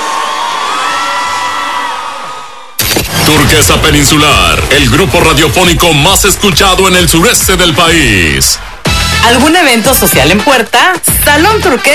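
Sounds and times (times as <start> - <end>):
crowd applause and cheering: 0.0 - 9.3
speech: 3.3 - 11.9.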